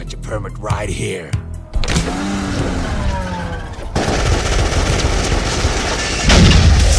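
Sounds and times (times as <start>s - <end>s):
speech: 0.3s - 2.4s
automatic gunfire in a shootout from the film Kung Fury: 4.0s - 6.8s.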